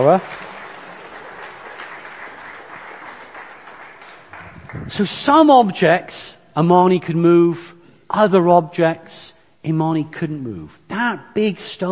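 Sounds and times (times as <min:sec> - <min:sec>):
speech: 0:00.0 - 0:00.4, 0:04.9 - 0:11.9
crowd applause: 0:00.0 - 0:05.2.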